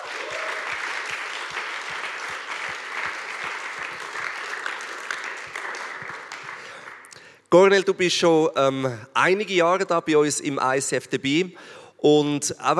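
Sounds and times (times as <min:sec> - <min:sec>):
audience applause: 0:00.0 - 0:07.1
speech: 0:07.5 - 0:12.7.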